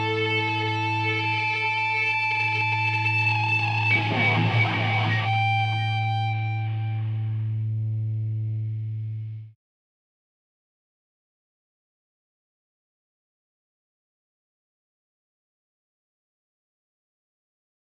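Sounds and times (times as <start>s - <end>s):
guitars: 0.0s - 9.5s.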